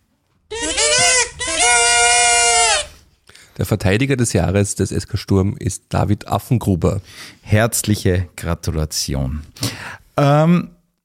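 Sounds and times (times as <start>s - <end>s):
voice singing a fanfare imitating trumpets: 0.5s - 2.9s
speech: 3.6s - 10.8s.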